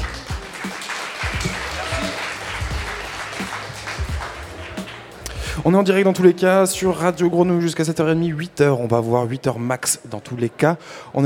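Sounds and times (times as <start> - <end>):
audience applause: 0.0 - 5.2
speech: 5.6 - 11.2.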